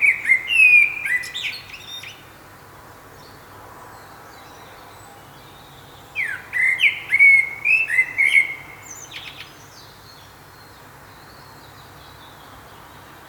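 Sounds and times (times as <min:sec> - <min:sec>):
common blackbird whistling: 0:00.0 - 0:02.1, 0:06.2 - 0:08.7.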